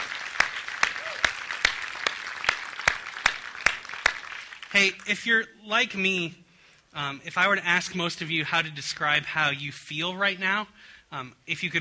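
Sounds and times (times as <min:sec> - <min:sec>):
audience applause: 0:00.0 - 0:05.0
speech: 0:04.7 - 0:11.8.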